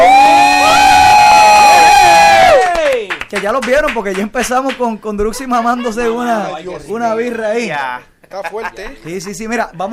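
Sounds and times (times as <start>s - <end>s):
crowd cheering with whoops and yells: 0.0s - 4.3s
speech: 3.4s - 9.9s
laughter: 5.2s - 9.9s.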